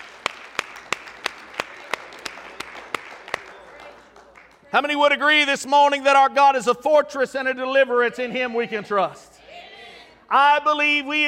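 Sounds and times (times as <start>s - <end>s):
audience applause: 0.0s - 4.8s
steady rhythmic beat of sharper claps: 0.0s - 5.0s
speech: 4.7s - 9.3s, 10.3s - 11.2s.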